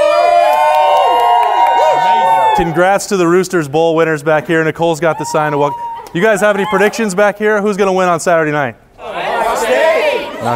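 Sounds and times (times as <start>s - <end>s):
small crowd of visitors cheering and whooping: 0.0s - 3.2s, 5.0s - 7.8s, 9.0s - 10.5s
speech: 2.6s - 8.8s.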